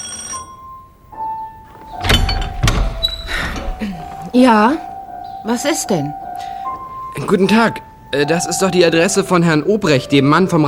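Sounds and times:
doorbell ringing: 0.0 - 0.9, 1.9 - 7.2
speech: 3.8 - 6.2, 7.2 - 10.6.

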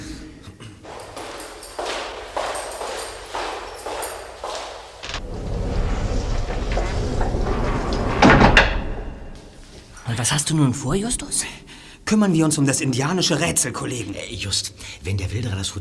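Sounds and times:
door closing: 0.8 - 9.6
speech: 10.2 - 15.7.

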